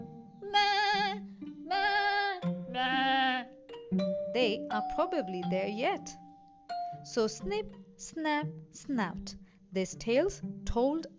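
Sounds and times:
billy goat bleating: 0:00.4 - 0:03.6
speech: 0:04.4 - 0:06.2, 0:07.0 - 0:11.1.

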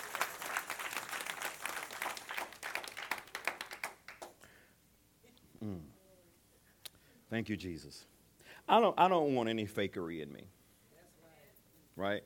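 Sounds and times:
audience applauding: 0:00.0 - 0:04.4
speech: 0:07.3 - 0:10.6, 0:12.0 - 0:12.2.

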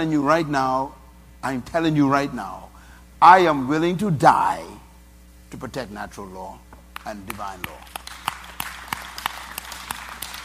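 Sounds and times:
speech: 0:00.0 - 0:04.8, 0:05.5 - 0:08.0
church audience clapping: 0:07.0 - 0:10.4.

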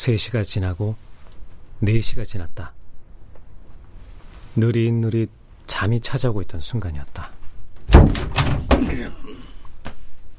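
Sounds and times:
speech: 0:00.0 - 0:01.1, 0:01.8 - 0:02.8, 0:04.6 - 0:07.4, 0:08.0 - 0:09.5
door bursting open: 0:07.8 - 0:09.2
sharp knock: 0:07.9 - 0:08.9.

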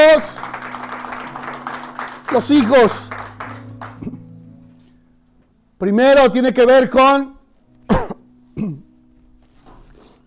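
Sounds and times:
audience clapping: 0:00.0 - 0:04.3
speech: 0:02.3 - 0:03.1, 0:05.8 - 0:07.4, 0:08.6 - 0:08.8.

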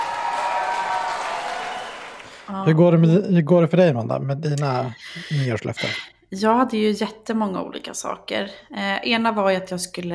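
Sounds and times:
applause edited into a recording: 0:00.0 - 0:02.6
speech: 0:02.5 - 0:10.1.

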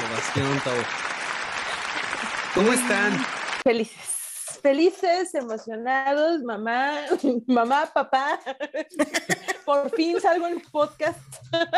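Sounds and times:
recorded applause sound effect: 0:00.0 - 0:03.7
speech: 0:00.4 - 0:01.2, 0:02.6 - 0:11.7
laughter: 0:01.6 - 0:03.3, 0:08.2 - 0:11.7.

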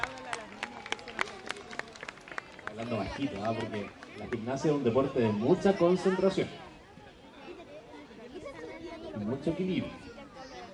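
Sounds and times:
audience applause: 0:00.0 - 0:04.6
speech: 0:02.8 - 0:06.6, 0:09.4 - 0:10.1.

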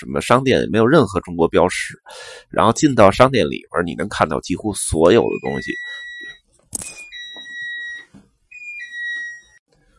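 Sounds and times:
speech: 0:00.0 - 0:06.0
doorbell ringing: 0:05.3 - 0:09.6.

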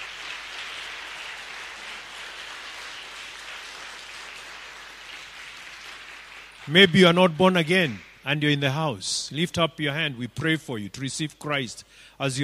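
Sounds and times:
audience clapping: 0:00.0 - 0:08.4
speech: 0:06.6 - 0:12.4.

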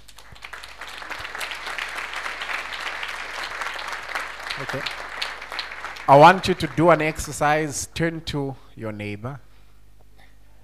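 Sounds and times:
audience applause: 0:00.0 - 0:07.8
speech: 0:04.6 - 0:05.0, 0:06.1 - 0:09.5.

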